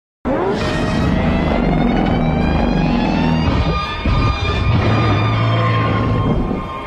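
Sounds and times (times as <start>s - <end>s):
Ghidorah alpha call: 0.3s - 6.6s.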